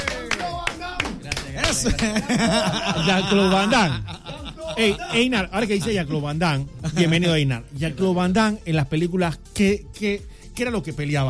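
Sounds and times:
sparse hand claps from an audience welcoming a guest: 0.0 - 2.5
laughter: 1.4 - 7.5
speech: 1.8 - 4.2, 4.8 - 11.2.

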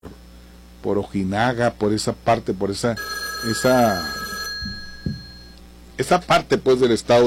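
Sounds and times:
speech: 0.8 - 4.8, 6.0 - 7.2
telephone ringing with an incoming call: 3.0 - 5.7.

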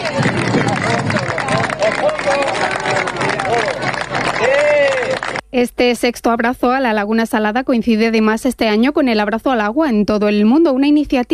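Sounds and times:
crowd applauding: 0.0 - 5.4
speech: 5.6 - 11.3.

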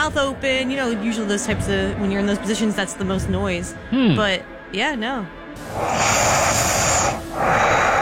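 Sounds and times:
speech: 0.0 - 6.7
heavy nasal breathing while sleeping: 5.5 - 8.0.

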